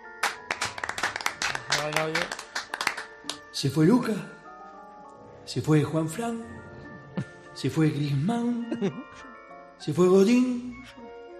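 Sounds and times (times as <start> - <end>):
applause in the locker room: 0.2 - 3.4
speech: 1.8 - 2.4, 3.6 - 4.4, 5.5 - 6.7, 7.6 - 11.0.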